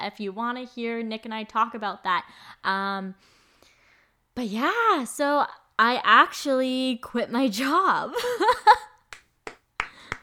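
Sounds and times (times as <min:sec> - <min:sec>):
speech: 0:00.0 - 0:03.4, 0:04.4 - 0:08.9
slow clapping: 0:09.1 - 0:10.2.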